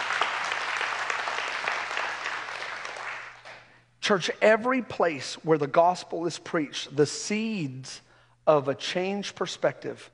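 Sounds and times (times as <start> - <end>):
audience applause, hand clapping: 0.0 - 3.7
speech: 4.1 - 10.1.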